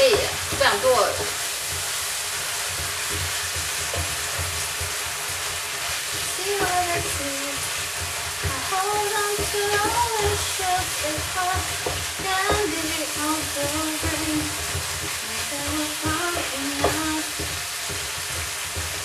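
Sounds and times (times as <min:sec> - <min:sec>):
minced meat sizzling in a pan: 0:00.0 - 0:19.0
speech: 0:08.8 - 0:14.7.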